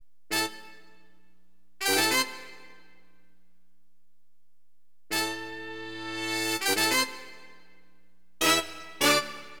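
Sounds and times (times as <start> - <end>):
acid jazz funk horn: 1.8 - 2.9, 5.1 - 7.7, 8.4 - 9.5.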